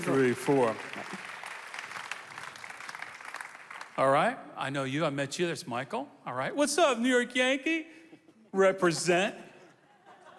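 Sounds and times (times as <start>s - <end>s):
speech: 0.0s - 0.9s, 4.0s - 9.5s
audience applause: 0.0s - 4.0s
laughter: 8.1s - 10.3s.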